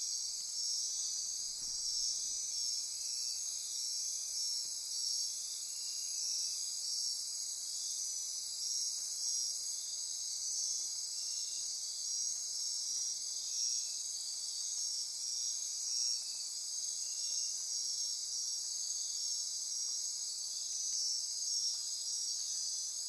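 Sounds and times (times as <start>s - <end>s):
midnight insect chorus near Corcovado: 0.0s - 23.0s.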